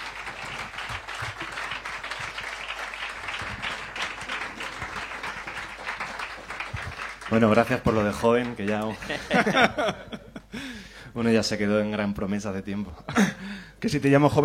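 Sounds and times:
audience applause: 0.0 - 9.7
speech: 7.3 - 10.2, 11.2 - 14.4
laughter: 8.7 - 10.6.

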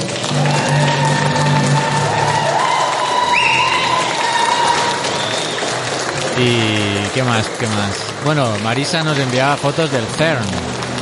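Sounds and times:
cheering voices: 0.0 - 10.4
steady loud applause: 0.0 - 11.0
high whistle-like tones: 3.3 - 4.0, 5.0 - 5.8
speech: 6.4 - 10.8.

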